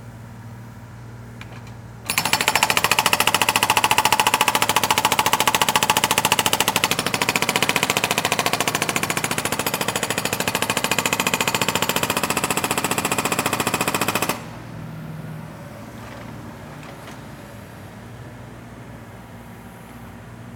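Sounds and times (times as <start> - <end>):
jackhammer: 2.1 - 14.6.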